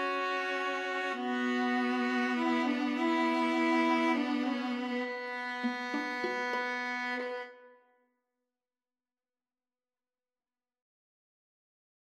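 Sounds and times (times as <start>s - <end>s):
Spanish violin trio: 0.0s - 7.6s.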